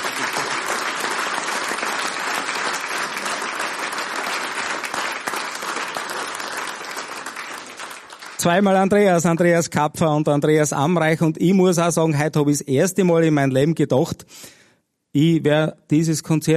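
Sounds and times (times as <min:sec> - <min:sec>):
audience applause: 0:00.0 - 0:09.2
speech: 0:08.4 - 0:14.5, 0:15.1 - 0:16.5.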